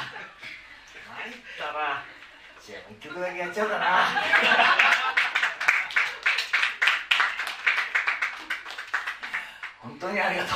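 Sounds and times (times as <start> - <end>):
speech: 1.2 - 5.1, 9.8 - 10.5
laughter: 3.7 - 5.7
audience clapping along in rhythm: 4.3 - 9.8.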